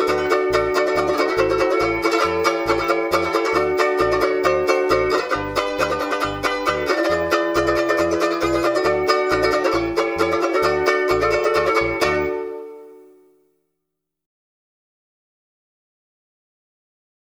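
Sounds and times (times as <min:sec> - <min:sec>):
bass: 0:00.0 - 0:12.6.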